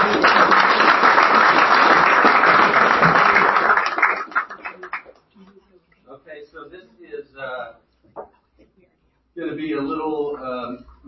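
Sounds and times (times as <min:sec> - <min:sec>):
crowd applauding: 0:00.0 - 0:05.3.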